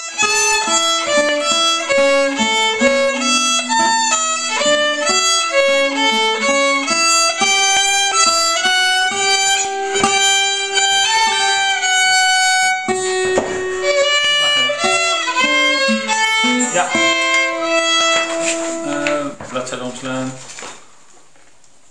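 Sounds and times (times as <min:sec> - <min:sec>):
violin playing: 0:00.0 - 0:19.4.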